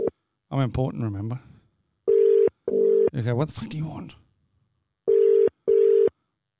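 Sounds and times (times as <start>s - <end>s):
speech: 0.5s - 1.5s, 3.1s - 4.2s
phone ringback tones: 2.1s - 3.1s, 5.1s - 6.2s.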